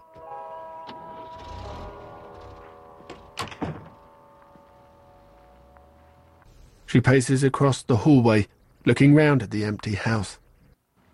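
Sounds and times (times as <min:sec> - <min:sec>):
steady low hum: 0:00.6 - 0:07.0
door pulled shut with solid thunk: 0:00.9 - 0:04.1
rattling knock: 0:00.9 - 0:04.1
speech: 0:06.9 - 0:10.4.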